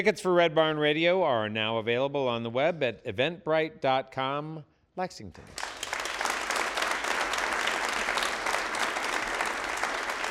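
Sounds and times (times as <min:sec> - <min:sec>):
speech: 0:00.0 - 0:05.7
audience applause: 0:05.5 - 0:10.2.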